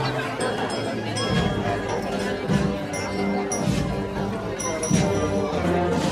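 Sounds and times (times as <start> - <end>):
ancient Catholic ringtone: 0.1 - 6.1.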